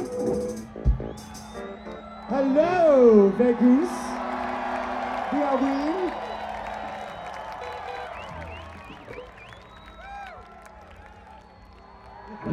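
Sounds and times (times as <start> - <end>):
sliding whistles: 0.0 - 3.0, 5.5 - 12.4
festival audience in Vegas cheering and clapping: 0.0 - 12.5
speech: 2.4 - 4.0.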